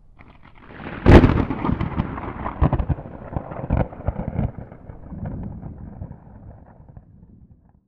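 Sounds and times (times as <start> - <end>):
lightning strike: 0.2 - 7.7.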